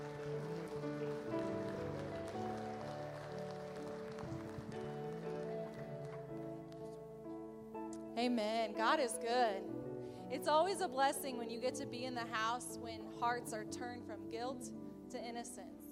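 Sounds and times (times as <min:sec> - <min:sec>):
audience clapping hands in praise: 0:00.0 - 0:07.0
speech: 0:08.2 - 0:15.8.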